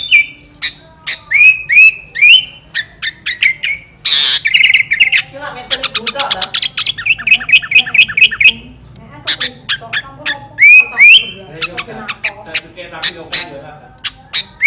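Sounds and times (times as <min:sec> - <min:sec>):
sooty-headed bulbul song in fierce style: 0:00.0 - 0:14.6.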